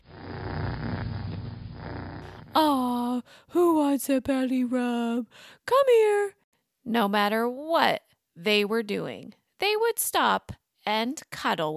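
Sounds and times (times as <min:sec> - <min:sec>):
cat purring loudly: 0:00.0 - 0:02.6
speech: 0:02.6 - 0:11.7.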